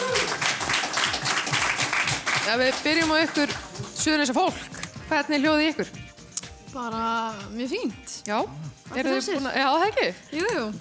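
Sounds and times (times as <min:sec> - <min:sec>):
audience applause for the competing schools: 0:00.0 - 0:04.0
speech: 0:02.5 - 0:06.0, 0:06.8 - 0:10.8.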